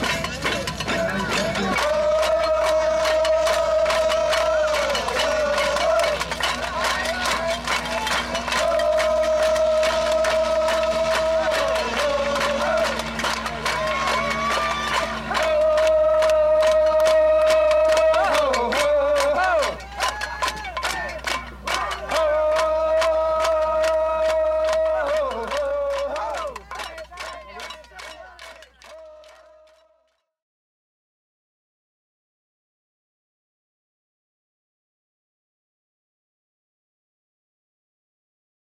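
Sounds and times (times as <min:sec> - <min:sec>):
rain chant field recording: 0:00.0 - 0:29.8.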